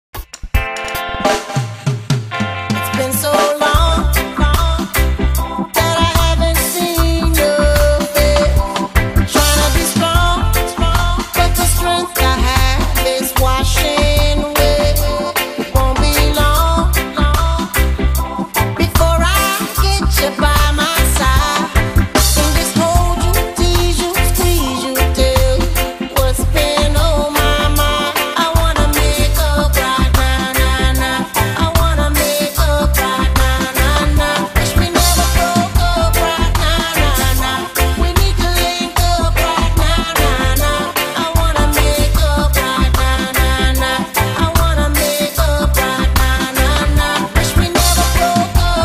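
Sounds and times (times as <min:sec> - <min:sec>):
reggae remix music: 0:00.2 - 0:48.8.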